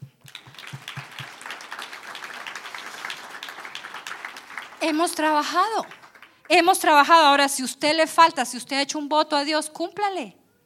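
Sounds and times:
audience applause: 0.2 - 6.6
speech: 4.8 - 10.4.

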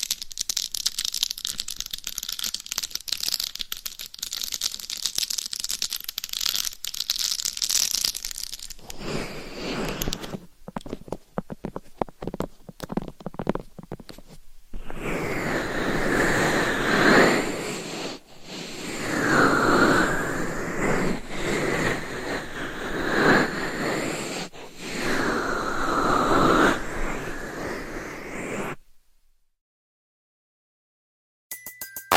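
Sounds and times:
slow rubbing strokes on a dummy head microphone: 0.0 - 10.6, 14.1 - 28.8
scratching on a dummy head microphone: 6.4 - 28.8.

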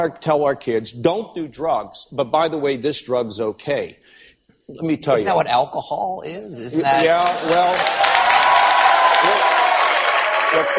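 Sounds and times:
speech: 0.0 - 8.1, 10.5 - 10.7
crowd clapping: 6.9 - 10.7
crowd shouting: 7.9 - 10.7.

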